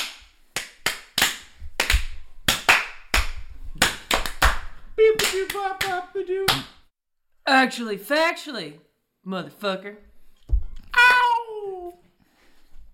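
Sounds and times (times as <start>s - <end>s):
people clapping: 0.0s - 6.8s
speech: 5.4s - 6.8s, 7.5s - 10.1s
high tonal vocal whoop: 10.9s - 12.0s.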